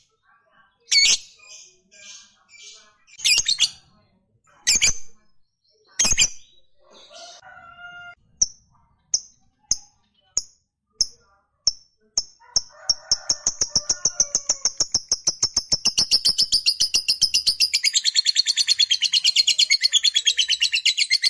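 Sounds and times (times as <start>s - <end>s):
fighter-type lovebird chattering in a rapid high buzzy trill: 0.9s - 3.8s, 8.4s - 21.2s.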